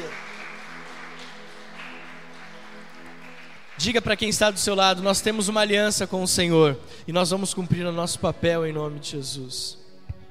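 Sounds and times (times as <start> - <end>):
audience applause: 0.0 - 5.0
speech: 3.8 - 9.8.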